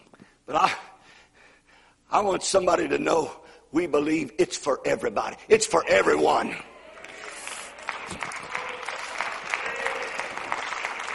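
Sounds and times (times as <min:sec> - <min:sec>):
speech: 0:00.5 - 0:00.9, 0:02.1 - 0:06.7
audience clapping: 0:06.8 - 0:11.1.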